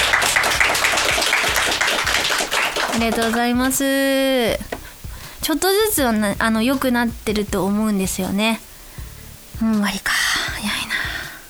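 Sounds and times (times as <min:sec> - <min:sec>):
audience clapping at a live recording: 0:00.0 - 0:04.8
speech: 0:03.0 - 0:04.8, 0:05.5 - 0:08.7, 0:09.6 - 0:10.1.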